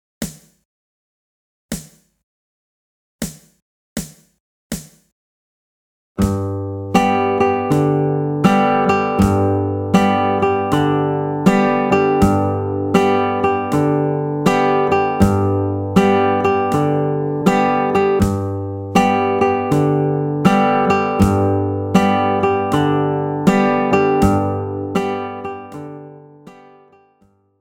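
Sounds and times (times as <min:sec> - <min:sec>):
slow Carter-style guitar picking: 0:06.2 - 0:27.1.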